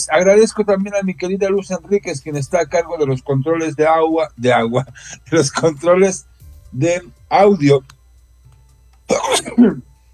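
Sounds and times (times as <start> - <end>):
speech: 0.0 - 8.0, 9.1 - 9.9
person sneezing: 9.1 - 9.8.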